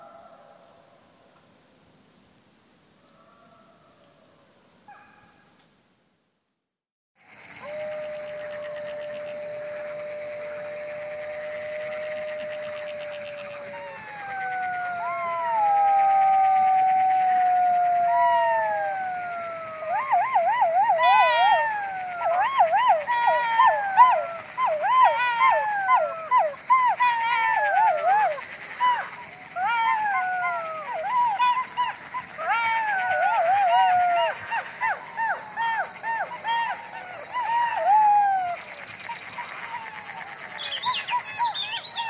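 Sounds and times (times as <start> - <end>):
jackal call: 7.4 - 42.0.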